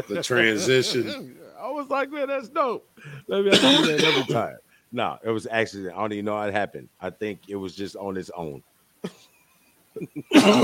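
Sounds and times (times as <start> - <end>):
speech: 0.0 - 9.3, 10.0 - 10.6
sneeze: 3.6 - 4.4, 10.3 - 10.6.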